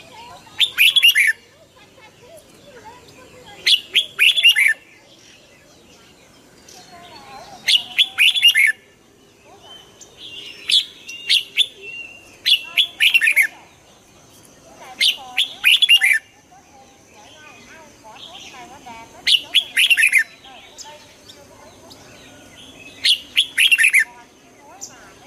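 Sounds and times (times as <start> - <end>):
red-whiskered bulbul song: 0.0 - 5.3, 6.6 - 13.9, 14.8 - 25.2.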